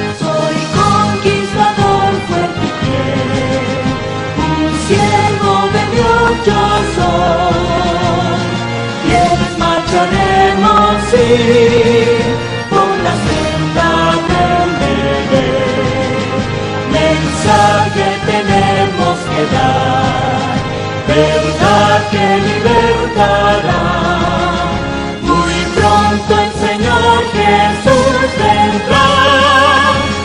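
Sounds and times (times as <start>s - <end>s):
people singing a hymn: 0.1s - 30.2s.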